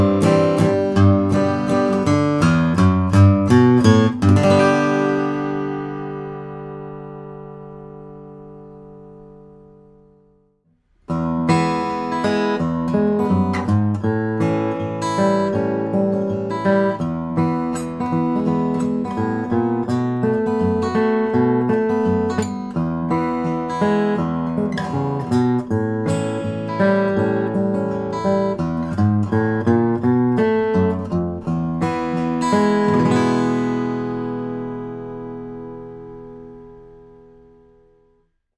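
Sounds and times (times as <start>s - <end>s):
guitars playing: 0.0s - 38.1s.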